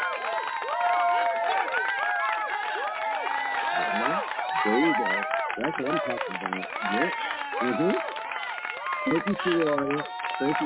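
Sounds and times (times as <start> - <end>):
audience cheering and applauding a guest: 0.0 - 10.6
laughter: 3.6 - 10.6
speech: 4.6 - 8.1, 9.0 - 10.6.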